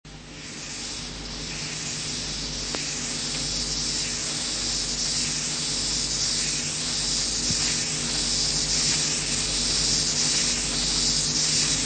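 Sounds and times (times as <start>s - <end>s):
heath grasshopper rasping song: 0.2s - 11.8s.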